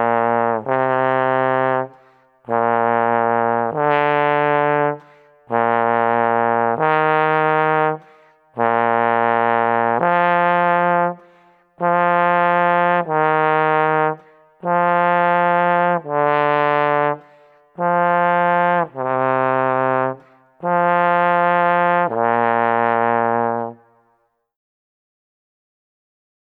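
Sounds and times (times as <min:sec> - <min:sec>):
trombone embouchure exercise for tied notes: 0:00.0 - 0:23.8.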